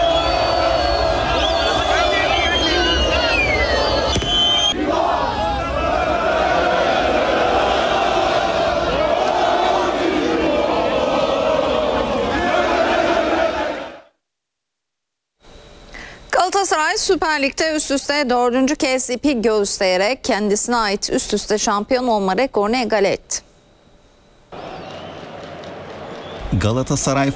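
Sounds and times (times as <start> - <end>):
football fans singing championship songs in a European city: 0.0 - 14.1, 24.6 - 27.3
speech: 17.3 - 23.4, 26.6 - 27.3.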